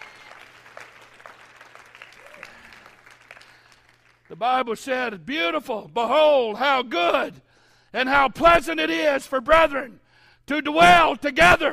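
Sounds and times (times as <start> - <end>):
audience clapping hands: 0.0 - 4.4
speech: 4.3 - 11.7.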